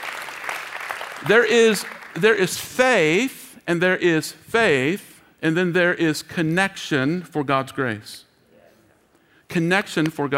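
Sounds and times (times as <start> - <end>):
audience clapping: 0.0 - 2.5
speech: 1.2 - 8.3, 9.5 - 10.3.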